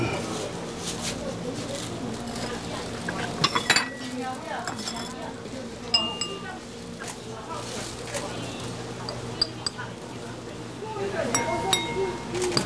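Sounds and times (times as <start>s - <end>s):
people talking: 0.0s - 12.6s
ceramic bowls and plates clinking as they are tapped: 3.3s - 5.2s, 5.9s - 6.6s, 11.3s - 12.6s.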